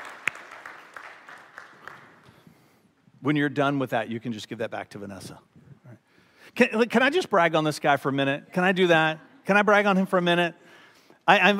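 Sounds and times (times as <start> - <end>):
audience clapping: 0.0 - 2.7
speech: 3.2 - 5.6, 6.6 - 11.5.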